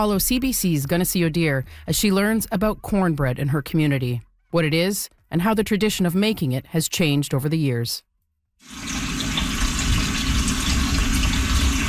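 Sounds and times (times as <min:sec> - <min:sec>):
speech: 0:00.0 - 0:09.0
water running from tap into pot: 0:08.6 - 0:11.8.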